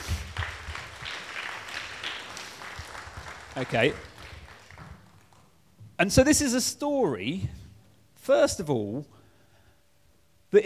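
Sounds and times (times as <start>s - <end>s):
crowd applauding: 0.0s - 5.6s
speech: 3.6s - 4.1s, 6.0s - 7.6s, 8.2s - 9.2s.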